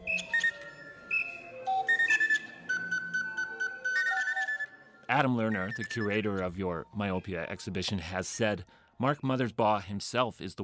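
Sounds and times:
keyboard-controlled bird call machine playing: 0.0s - 4.7s, 5.4s - 7.6s
speech: 5.1s - 10.6s.

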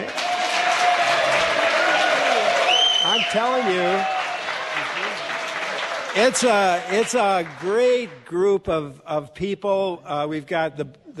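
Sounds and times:
large crowd applauding: 0.0s - 8.4s
speech: 3.3s - 4.2s, 6.2s - 11.1s.

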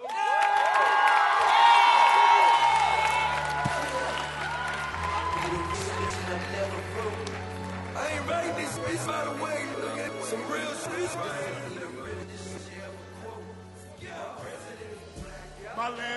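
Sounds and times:
audience cheering and whooping: 0.0s - 9.0s
audience clapping: 0.0s - 10.6s.

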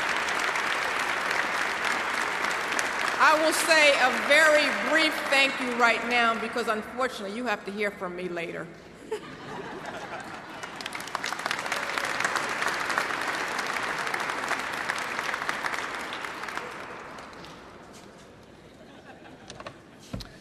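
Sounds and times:
audience applause for a woman professor: 0.0s - 5.9s, 9.9s - 17.7s
speech: 3.2s - 9.5s
laughter: 9.0s - 10.8s, 18.6s - 20.2s.

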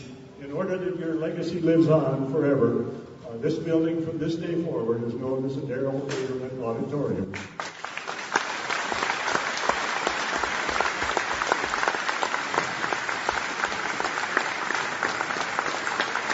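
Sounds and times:
speech: 0.4s - 7.6s
large crowd applause after building dedication: 7.6s - 16.3s.

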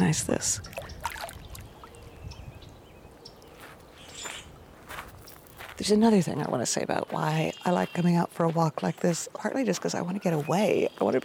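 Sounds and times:
flowing water: 0.0s - 5.0s
speech: 0.1s - 0.9s, 5.8s - 11.2s.

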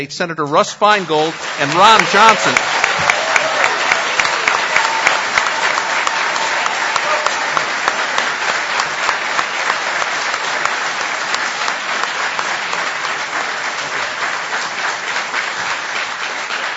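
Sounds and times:
speech: 0.0s - 3.1s
theater audience applause: 0.8s - 16.7s.

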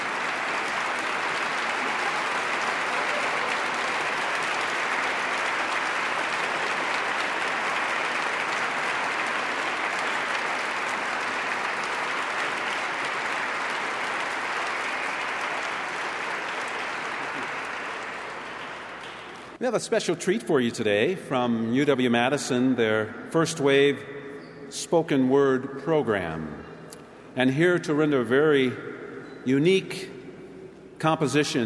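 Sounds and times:
audience standing and applauding: 0.0s - 19.6s
speech: 19.6s - 24.1s, 24.7s - 26.7s, 27.4s - 30.1s, 31.0s - 31.6s.

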